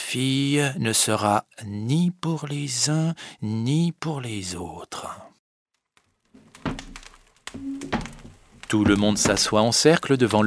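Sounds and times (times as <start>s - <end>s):
speech: 0.1s - 5.3s, 7.5s - 8.0s, 8.7s - 10.4s
dull heavy knocks on a door: 7.6s - 9.5s.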